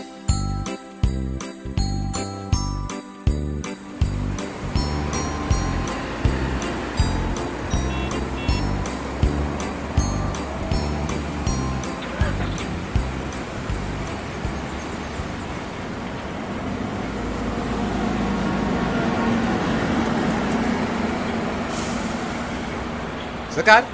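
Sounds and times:
rhythmic chiming clanks: 0.0 - 16.8
broad hiss of traffic and idling vehicles: 3.6 - 23.9
low engine rumble: 4.0 - 23.4.

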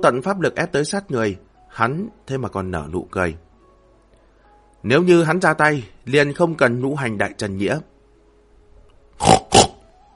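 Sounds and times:
speech: 0.0 - 3.5, 4.8 - 7.9, 9.2 - 9.4
pig squealing: 9.2 - 9.8.

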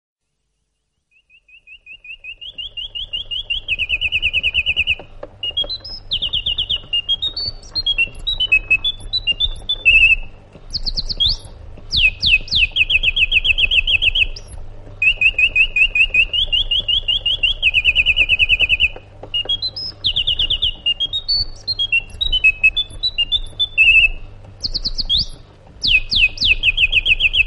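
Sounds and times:
sooty-headed bulbul singing: 1.1 - 27.4.

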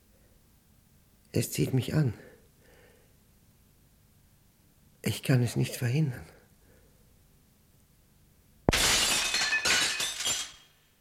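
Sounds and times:
speech: 1.3 - 2.3, 5.1 - 6.4
window pane glass shattering: 8.7 - 10.8.

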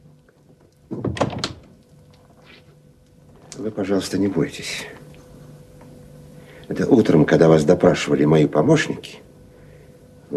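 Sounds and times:
door closing: 0.9 - 1.8
speech: 3.6 - 5.0, 6.7 - 9.2.

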